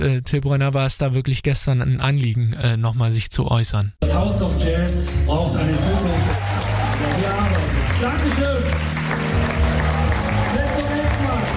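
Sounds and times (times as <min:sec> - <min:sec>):
speech: 0:00.0 - 0:09.2
crowd clapping and cheering: 0:04.0 - 0:11.5.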